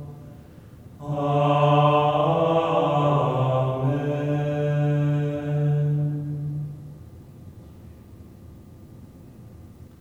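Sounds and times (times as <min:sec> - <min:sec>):
hymn in fauxbourdon style: 0:00.0 - 0:07.0.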